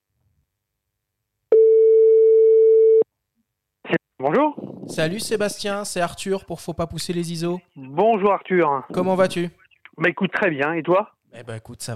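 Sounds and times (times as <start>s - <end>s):
telephone ringing tone during a call: 1.5s - 3.0s
speech: 4.2s - 11.9s.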